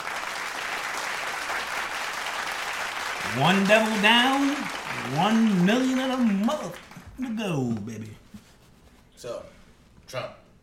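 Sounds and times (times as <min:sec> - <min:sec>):
audience clapping: 0:00.0 - 0:07.6
speech: 0:03.2 - 0:08.2, 0:09.2 - 0:10.4.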